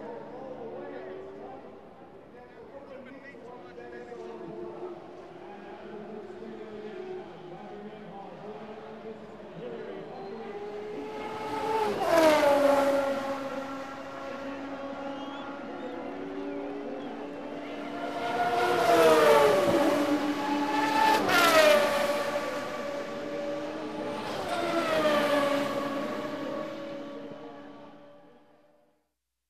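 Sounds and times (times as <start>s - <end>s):
Formula 1 racing car on the finishing straight: 10.0s - 28.2s.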